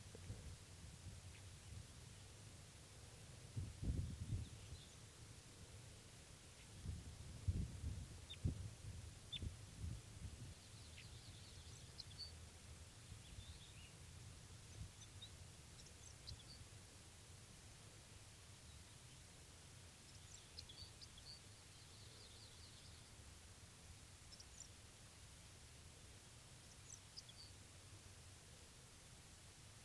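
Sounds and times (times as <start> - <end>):
wild bird singing soft song: 0.0 - 2.4, 3.5 - 5.4, 6.0 - 16.9, 18.0 - 23.4, 24.0 - 25.1, 26.0 - 28.0.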